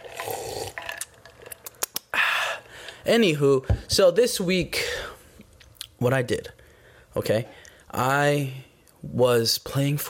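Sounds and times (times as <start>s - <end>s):
person taking a sip of Gatorade: 0.0s - 3.0s
speech: 3.0s - 5.1s, 6.0s - 6.6s, 7.2s - 10.0s.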